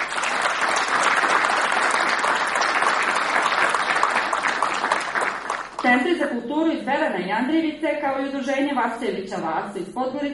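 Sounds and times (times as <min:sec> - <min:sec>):
audience applause honouring a journalist's reportage award: 0:00.0 - 0:05.8
speech: 0:05.9 - 0:10.3.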